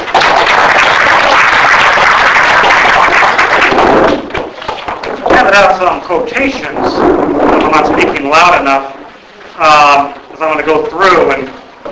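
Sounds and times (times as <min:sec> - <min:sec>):
audience applause welcoming a speaker: 0:00.0 - 0:05.1
speech: 0:05.6 - 0:09.0, 0:09.6 - 0:11.6.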